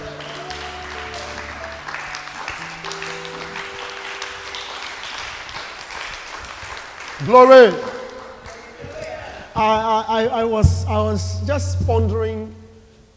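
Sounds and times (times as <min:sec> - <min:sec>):
organ or keyboard chords: 0:00.0 - 0:04.7, 0:10.4 - 0:13.1
audience clapping: 0:00.0 - 0:09.2
speech: 0:07.2 - 0:07.9, 0:09.6 - 0:12.6.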